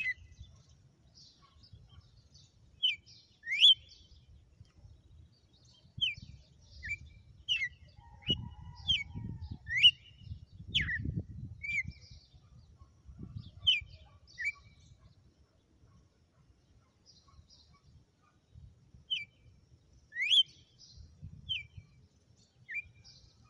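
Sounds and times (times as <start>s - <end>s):
Red-cowled cardinal song: 0.0s - 0.7s, 2.8s - 4.2s, 5.7s - 12.5s, 13.2s - 15.0s, 19.1s - 19.4s, 20.1s - 22.0s, 22.6s - 23.4s.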